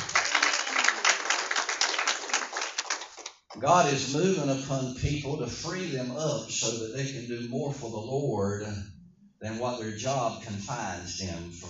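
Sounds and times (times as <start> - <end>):
audience hand clapping: 0.0 - 3.7
speech: 3.6 - 11.6.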